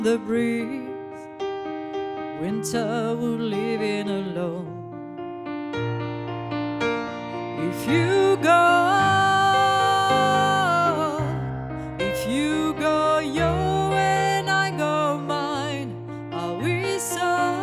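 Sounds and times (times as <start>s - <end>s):
piano: 0.0s - 17.6s
voice singing: 7.6s - 17.6s.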